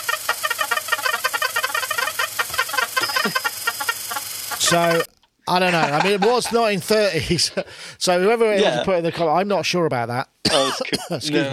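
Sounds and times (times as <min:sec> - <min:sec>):
Rhythmicon early electronic rhythm machine playing: 0:00.0 - 0:05.1
laughter: 0:02.6 - 0:07.9
speech: 0:04.7 - 0:11.5.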